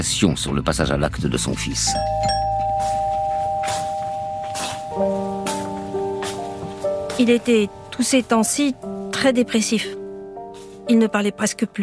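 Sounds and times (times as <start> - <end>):
speech: 0.0 - 2.4, 7.2 - 10.0, 10.9 - 11.8
doorbell chiming: 1.6 - 6.2.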